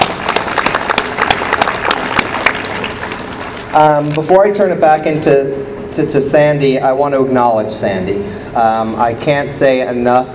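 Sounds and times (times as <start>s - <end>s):
audience applause: 0.0s - 3.6s
speech: 3.7s - 10.3s.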